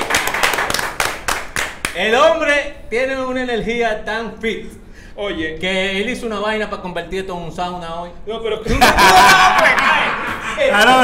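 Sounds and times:
applause welcoming a guest: 0:00.0 - 0:02.0
speech: 0:02.0 - 0:11.0
laughter: 0:08.7 - 0:11.0.

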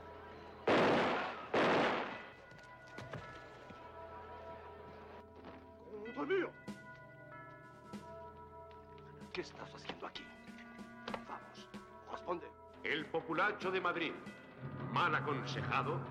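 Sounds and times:
firing squad gunfire volleys: 0:00.7 - 0:02.4
speech: 0:09.4 - 0:10.3, 0:12.3 - 0:16.0.

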